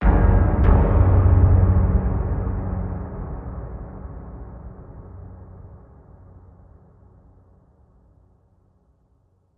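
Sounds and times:
horror hit: 0.0s - 7.1s.

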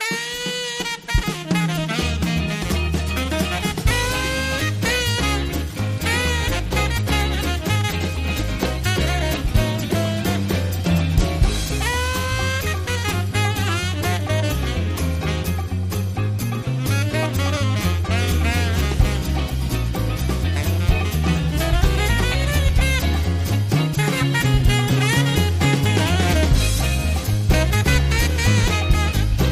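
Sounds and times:
short dancehall theme with light saxophone: 0.0s - 29.5s.

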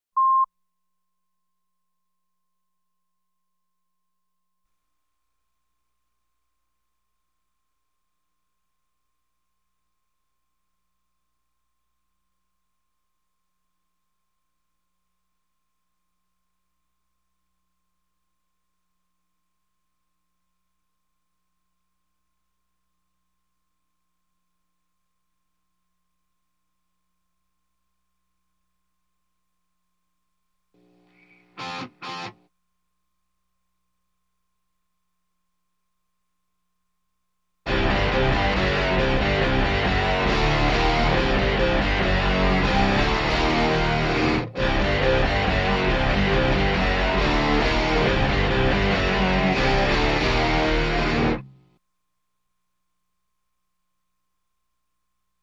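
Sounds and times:
guitars playing: 31.6s - 32.4s, 37.7s - 51.5s.

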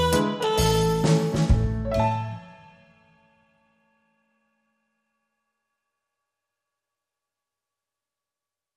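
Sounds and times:
instrumental music: 0.0s - 5.3s.

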